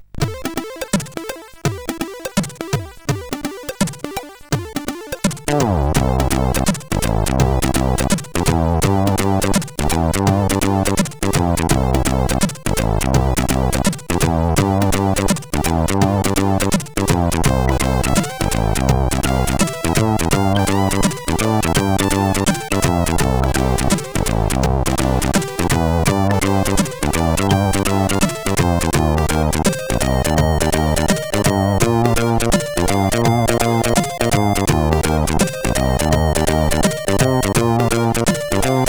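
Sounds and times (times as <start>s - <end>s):
jazzy chiptune music on SID CSG8580R5 chip: 0.2s - 38.8s.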